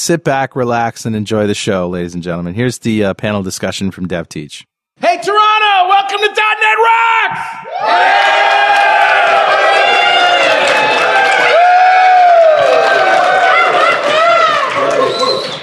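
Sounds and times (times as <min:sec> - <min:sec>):
speech: 0:00.0 - 0:09.6
large crowd cheering: 0:07.2 - 0:15.6.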